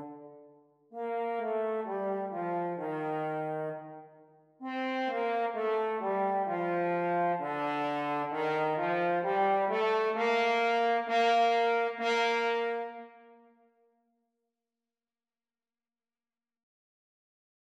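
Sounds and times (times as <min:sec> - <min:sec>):
French horn duet playalong at practice speeds: 0:01.0 - 0:04.0, 0:04.6 - 0:13.4.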